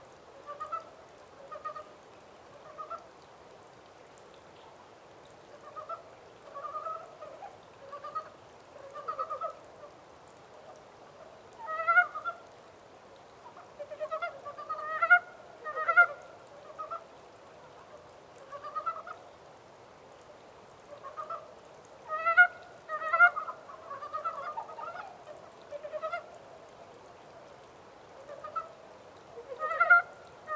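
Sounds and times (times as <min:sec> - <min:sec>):
montane brown frogs croaking: 0:05.4 - 0:10.0, 0:11.2 - 0:12.5, 0:13.4 - 0:19.2, 0:20.8 - 0:26.4, 0:28.2 - 0:30.5.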